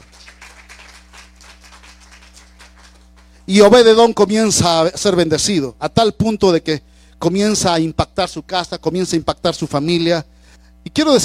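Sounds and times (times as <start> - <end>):
crowd clapping: 0.0 - 3.5
speech: 3.5 - 11.2.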